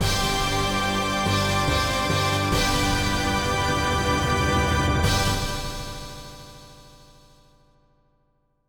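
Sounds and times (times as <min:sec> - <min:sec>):
jingle: 0:00.0 - 0:06.4.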